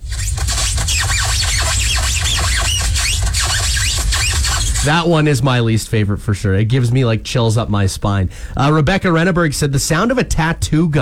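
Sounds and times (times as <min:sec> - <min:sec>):
styrofoam squeaking: 0:00.0 - 0:05.2
low rumbling: 0:00.0 - 0:08.5
speech: 0:04.8 - 0:11.0.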